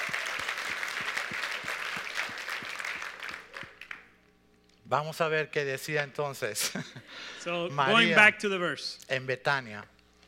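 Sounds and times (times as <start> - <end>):
audience applauding: 0.0 - 4.1
speech: 4.9 - 9.9.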